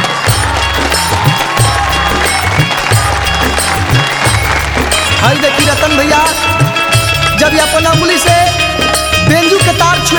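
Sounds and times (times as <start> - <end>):
audience applause: 0.0 - 7.2
low thumping beats: 0.3 - 10.1
speech: 7.4 - 8.4, 9.3 - 10.1.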